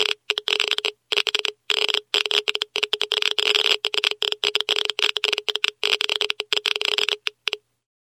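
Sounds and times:
Geiger counter clicking with radio signals: 0:00.0 - 0:07.6.

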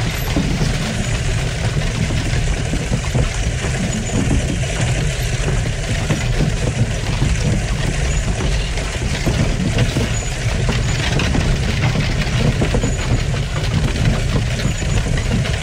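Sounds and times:
riding inside a horse-drawn carriage: 0:00.0 - 0:15.6.

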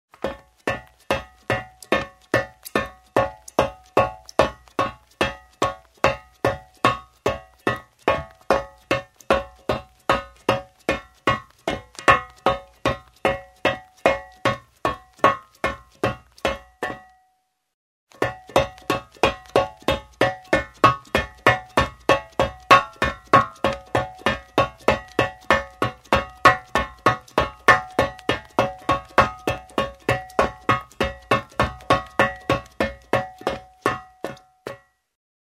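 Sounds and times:
running on a metal floor in shoes: 0:00.1 - 0:17.1, 0:18.1 - 0:35.2.

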